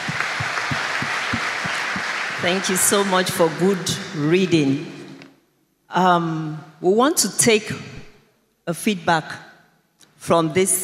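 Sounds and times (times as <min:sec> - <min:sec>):
crowd applauding: 0:00.0 - 0:04.2
speech: 0:02.4 - 0:05.0, 0:05.9 - 0:07.9, 0:08.7 - 0:09.5, 0:10.2 - 0:10.8.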